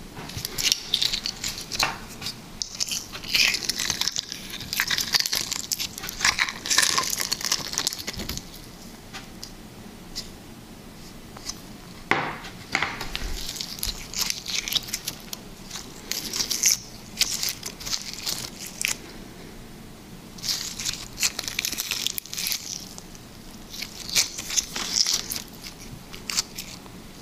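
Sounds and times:
liquid slime: 0.3 - 8.9, 13.1 - 19.2, 20.4 - 27.2.

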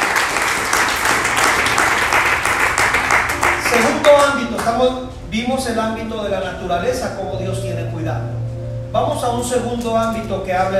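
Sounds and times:
audience applauding: 0.0 - 4.8
speech: 4.7 - 10.7.

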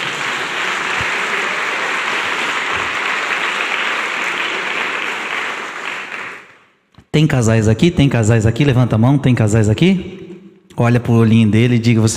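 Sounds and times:
audience applause: 0.0 - 6.7
speech: 7.2 - 10.2, 10.8 - 12.1.

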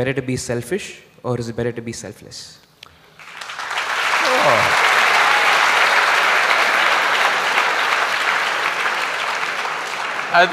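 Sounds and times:
speech: 0.0 - 2.7, 10.3 - 10.5
audience applause: 3.2 - 10.5.

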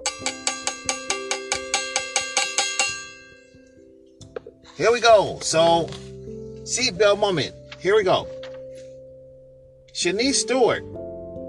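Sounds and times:
metallic bell struck in a quick rhythm: 0.0 - 3.8
speech: 4.8 - 6.1, 6.7 - 8.4, 10.0 - 11.0.

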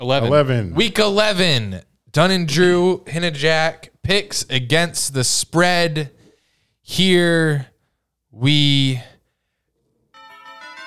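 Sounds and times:
speech: 0.0 - 6.2, 6.9 - 7.7, 8.4 - 9.1
bell ringing: 10.1 - 10.8.

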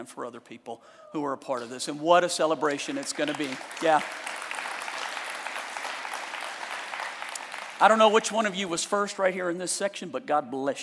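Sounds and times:
speech: 0.0 - 4.4, 7.8 - 10.8
crowd clapping: 1.6 - 8.8.

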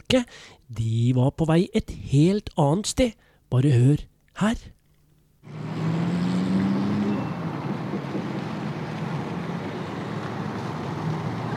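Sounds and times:
speech: 0.1 - 4.8
road noise: 5.4 - 11.5
small Volkswagen car engine humming speeding through town: 5.4 - 11.5.

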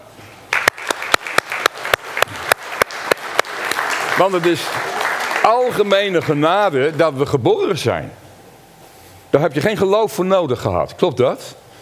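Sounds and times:
crowd applause: 0.5 - 6.4
speech: 4.2 - 8.2, 9.3 - 11.6.

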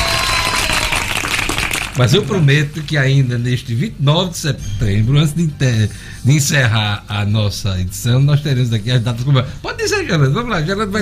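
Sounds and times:
applause: 0.0 - 2.9
speech: 2.0 - 11.0.

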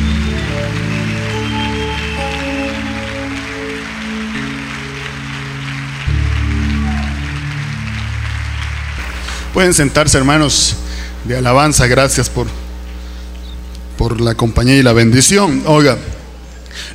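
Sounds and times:
audience applauding: 0.0 - 10.6
sustained keyboard chords that shift pitch: 0.0 - 12.9
speech: 9.6 - 12.6, 14.0 - 16.2, 16.8 - 16.9.

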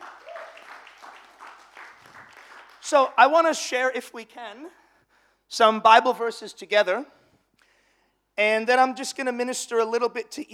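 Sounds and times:
audience clapping: 0.0 - 3.4
speech: 2.8 - 4.8, 5.5 - 7.2, 8.4 - 10.5.

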